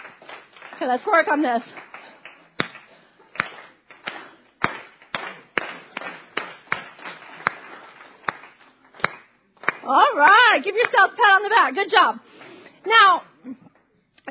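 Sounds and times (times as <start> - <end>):
crowd clapping in unison: 0.0 - 10.1, 10.8 - 11.0
speech: 0.8 - 1.8, 9.9 - 13.6.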